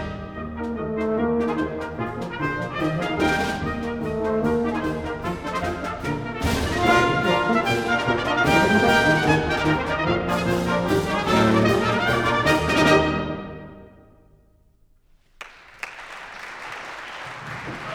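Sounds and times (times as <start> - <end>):
Civil War brass band playing: 0.0 - 14.2.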